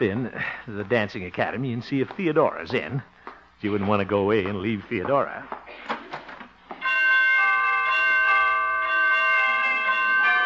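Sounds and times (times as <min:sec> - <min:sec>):
speech: 0:00.0 - 0:05.9
door chimes ringing: 0:06.8 - 0:10.4.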